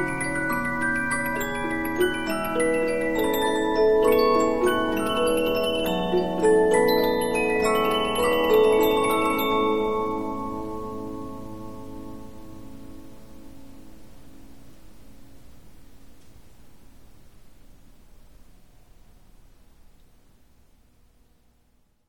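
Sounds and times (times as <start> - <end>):
Polyphon 15-inch disc music box playing: 0.0 - 11.6.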